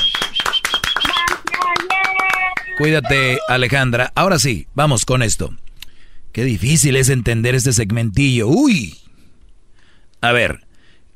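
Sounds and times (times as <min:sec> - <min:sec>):
hand clapping: 0:00.0 - 0:02.9
speech: 0:02.8 - 0:05.6, 0:06.4 - 0:09.0, 0:10.2 - 0:10.6.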